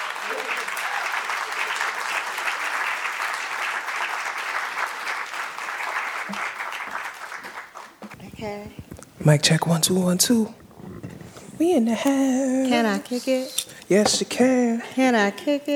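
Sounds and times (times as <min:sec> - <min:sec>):
audience applause: 0:00.0 - 0:08.9
speech: 0:08.4 - 0:10.6, 0:11.6 - 0:15.7.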